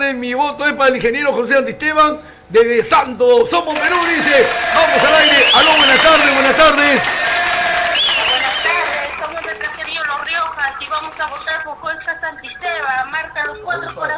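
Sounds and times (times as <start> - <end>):
speech: 0.1 - 7.3, 11.1 - 14.1
crowd cheering and shouting: 3.8 - 9.2.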